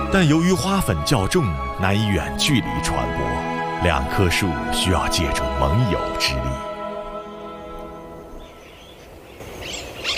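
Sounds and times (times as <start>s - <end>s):
speech: 0.1s - 6.8s
flock of parrots calling: 8.4s - 10.1s.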